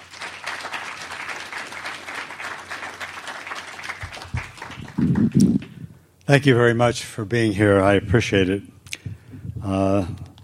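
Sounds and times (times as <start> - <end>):
audience applause: 0.0 - 5.8
speech: 5.0 - 5.7, 6.3 - 8.7, 9.6 - 10.2.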